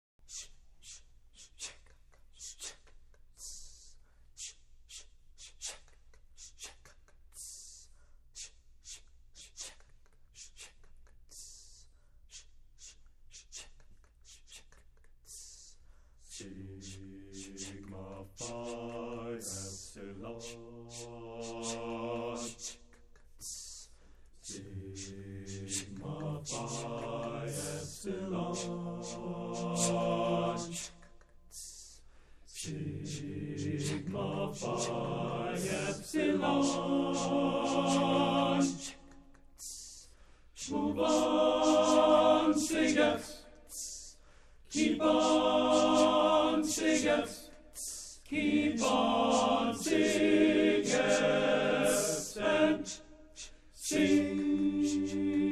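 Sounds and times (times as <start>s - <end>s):
chant in Dorian mode: 15.4s - 55.5s.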